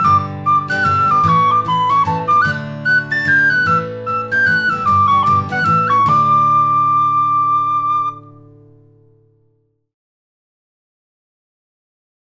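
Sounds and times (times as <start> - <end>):
mazurka: 0.0 - 8.2.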